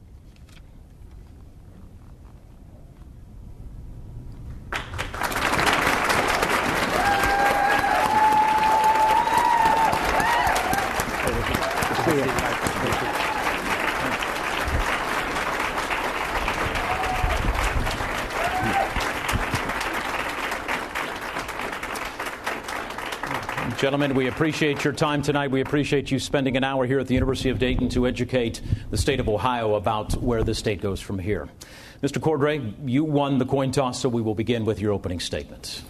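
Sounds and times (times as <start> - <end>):
live debate audience clapping for candidates at University of Dayton, Ohio: 4.6 - 26.0
speech: 23.8 - 35.8.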